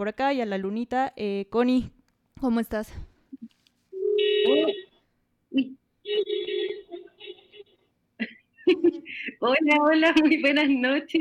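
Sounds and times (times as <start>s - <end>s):
speech: 0.0s - 3.5s, 4.2s - 4.9s, 5.5s - 6.8s, 8.7s - 11.1s
car horns honking: 4.0s - 5.0s, 6.0s - 7.8s.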